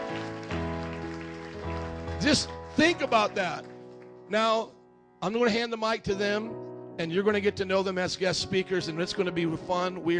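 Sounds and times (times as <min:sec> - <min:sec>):
crowd clapping: 0:00.0 - 0:04.3
sustained keyboard chords: 0:00.0 - 0:10.1
speech: 0:02.2 - 0:03.7, 0:04.3 - 0:10.1.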